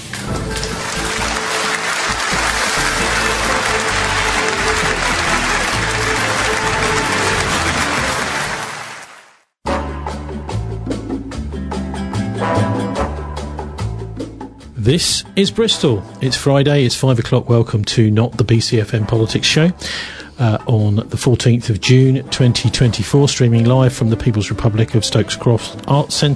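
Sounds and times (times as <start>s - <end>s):
crowd applause: 0.0s - 9.5s
music: 0.0s - 26.3s
speech: 14.9s - 26.3s.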